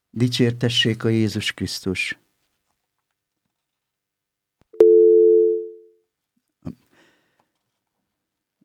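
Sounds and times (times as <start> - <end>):
speech: 0.2 - 2.2
telephone line tone from an incoming call that fails to connect: 4.8 - 5.8.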